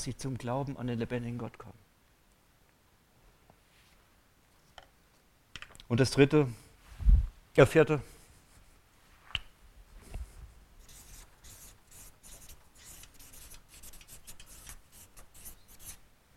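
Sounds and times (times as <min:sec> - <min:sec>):
speech: 0:00.0 - 0:01.9, 0:05.9 - 0:06.6, 0:07.6 - 0:08.1
handwriting with a pen: 0:10.8 - 0:16.0.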